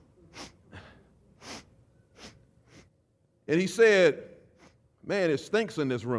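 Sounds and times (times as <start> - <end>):
person imitating sniffing: 0.3 - 3.0
speech: 3.5 - 4.3, 5.0 - 6.1.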